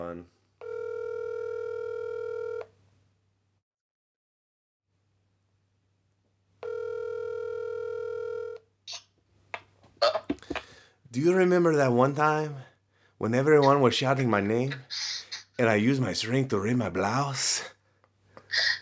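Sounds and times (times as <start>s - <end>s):
phone call dialing on speakerphone: 0.6s - 2.7s, 6.6s - 8.6s
speech: 11.2s - 15.0s, 15.6s - 17.7s.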